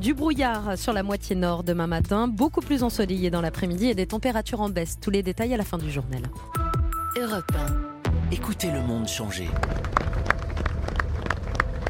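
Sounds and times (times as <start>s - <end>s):
speech: 0.0s - 10.1s
low rumble of many people: 9.3s - 11.8s
applause of thousands along a funeral route: 9.4s - 11.8s.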